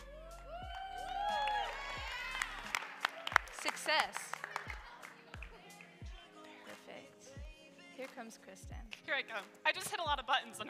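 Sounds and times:
audience shouting answers at once: 0.5 - 2.7
hand claps: 0.7 - 6.1
speech: 3.9 - 4.4, 8.0 - 10.6.

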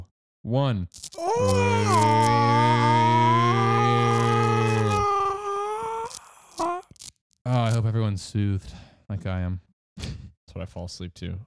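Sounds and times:
speech: 0.4 - 2.6, 7.4 - 11.4
people imitating whale calls: 1.2 - 7.0.

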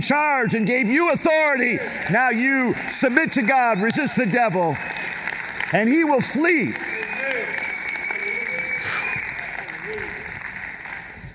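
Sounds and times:
speech: 0.0 - 6.9
crowd cheering voices: 0.0 - 11.3
audience applause: 0.2 - 11.3
loud shrill whistle from the audience: 6.7 - 10.8.

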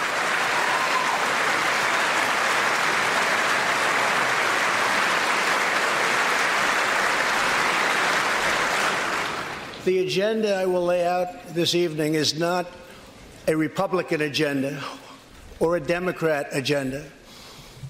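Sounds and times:
standing applause in legislative chamber: 0.0 - 9.8
speech: 9.8 - 12.8, 13.5 - 15.0, 15.6 - 17.2.

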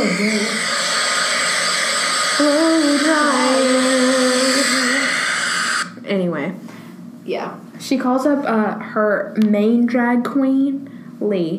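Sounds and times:
blow dryer running: 0.0 - 6.0
speech: 0.2 - 0.7, 6.1 - 11.5.

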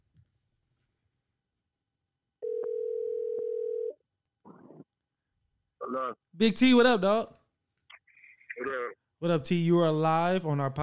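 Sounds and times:
phone call ringback tone: 2.4 - 4.0
speech: 5.9 - 7.4, 9.2 - 10.8.

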